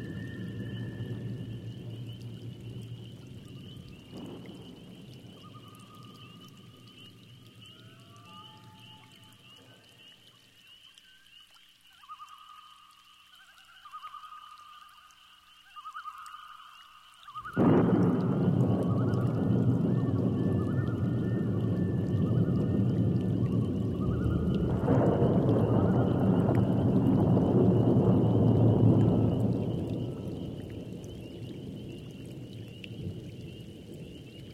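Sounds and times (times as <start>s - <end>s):
thunderstorm: 0.0s - 9.9s, 17.4s - 34.5s.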